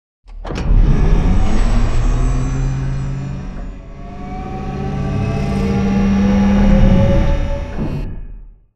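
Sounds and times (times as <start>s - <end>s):
giant floor panel servo on track: 0.3s - 8.4s.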